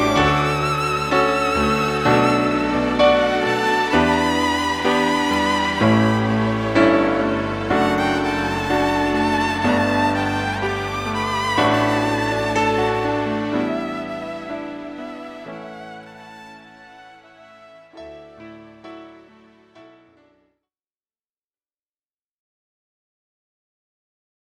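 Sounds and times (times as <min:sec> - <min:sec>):
violin in cocktail and dinner music: 0:00.0 - 0:20.3
keyboard in cocktail and dinner music: 0:00.0 - 0:20.5.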